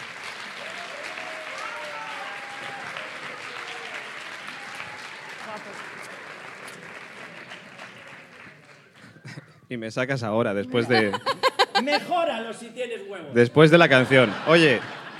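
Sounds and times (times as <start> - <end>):
audience applause: 0.0 - 9.4, 14.0 - 15.1
laughter: 4.6 - 9.7, 10.6 - 12.4, 13.8 - 15.1
speech: 9.7 - 15.0.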